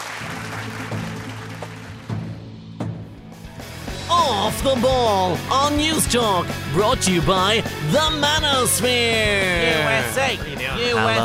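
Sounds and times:
audience applause: 0.0 - 2.4
speech: 4.5 - 11.2.

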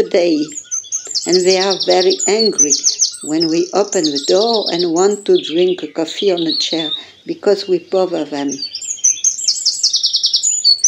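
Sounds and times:
speech: 0.0 - 0.6, 1.2 - 8.8
bird calling near harbor houses: 0.0 - 10.8.

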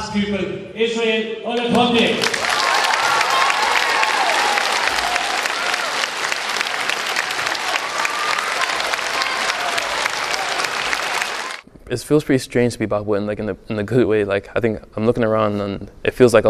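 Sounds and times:
speech: 0.0 - 2.4, 11.9 - 16.4
audience applause welcoming a speaker at a school event: 2.2 - 11.6.

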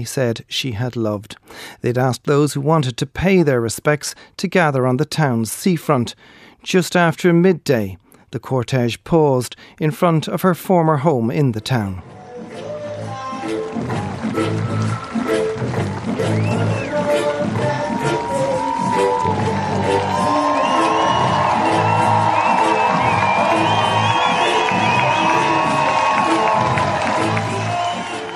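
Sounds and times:
speech: 0.0 - 12.7, 13.8 - 15.1
music in Bray: 11.3 - 28.3
crowd clapping in Bray: 13.0 - 28.3.

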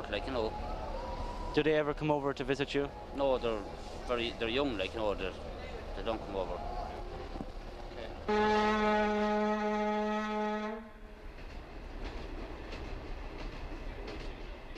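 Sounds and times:
train rail rumble at London's Euston Station: 0.0 - 14.7
speech: 0.1 - 0.8, 1.5 - 6.8, 8.2 - 10.1
train horn arriving at London's Euston Station in 1978: 8.2 - 11.1.

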